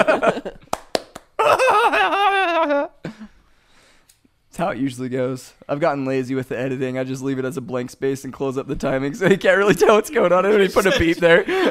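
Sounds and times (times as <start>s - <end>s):
laughter: 0.0s - 0.7s, 1.4s - 3.3s, 9.2s - 11.6s
speech: 0.0s - 0.8s, 4.6s - 11.6s
hand clap: 0.6s - 1.4s.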